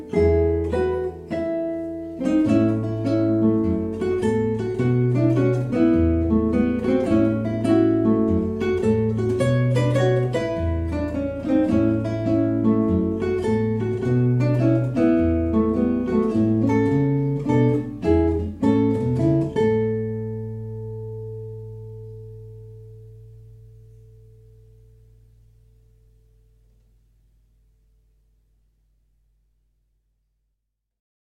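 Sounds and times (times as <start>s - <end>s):
jazz duo playing: 0.0s - 20.8s.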